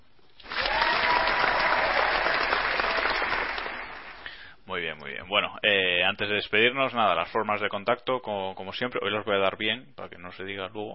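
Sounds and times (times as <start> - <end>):
applause sound effect: 0.4 - 4.3
speech: 5.3 - 10.9.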